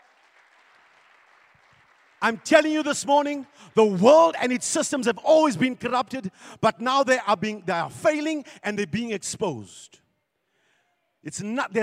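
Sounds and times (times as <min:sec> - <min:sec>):
audience clapping: 0:00.0 - 0:04.0
speech: 0:02.2 - 0:10.0, 0:11.2 - 0:11.8.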